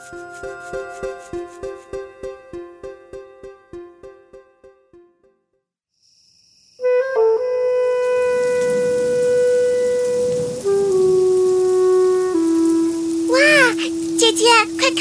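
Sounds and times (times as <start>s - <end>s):
speech: 0.1s - 1.4s
rain falling: 7.9s - 15.0s.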